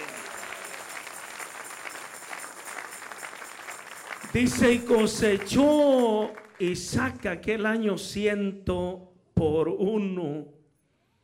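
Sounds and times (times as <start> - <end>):
audience applauding: 0.0 - 7.5
speech: 4.4 - 10.6.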